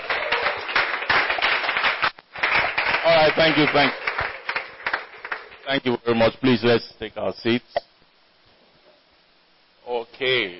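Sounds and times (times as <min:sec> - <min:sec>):
event audience clapping in a standing ovation: 0:00.0 - 0:05.9
speech: 0:03.2 - 0:04.0, 0:05.7 - 0:07.9, 0:10.2 - 0:10.5.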